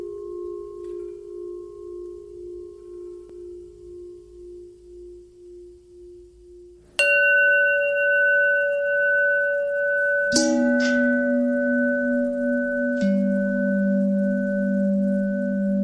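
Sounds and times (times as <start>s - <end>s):
long bell ringing: 7.0s - 15.7s.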